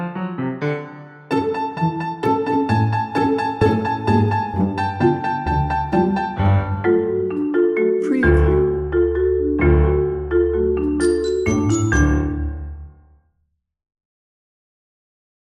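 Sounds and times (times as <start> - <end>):
playful pizzicato strings: 1.3 - 12.7.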